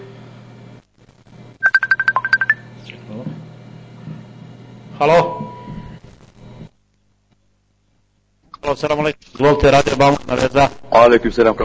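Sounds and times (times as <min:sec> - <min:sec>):
incoming telephone call ringtone on a radio show: 0:01.6 - 0:03.0
speech: 0:05.0 - 0:05.4, 0:08.7 - 0:11.6.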